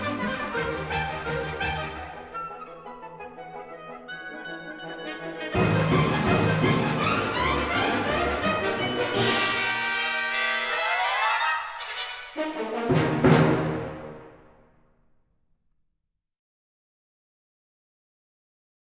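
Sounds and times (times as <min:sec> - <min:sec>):
galop music: 0:00.0 - 0:14.4.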